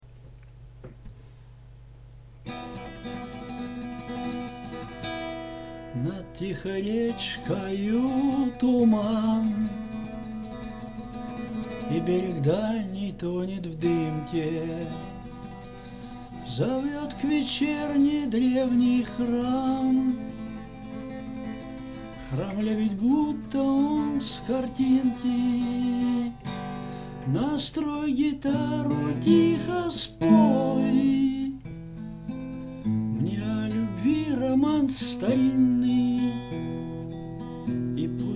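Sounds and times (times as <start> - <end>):
guitar: 2.3 - 38.3.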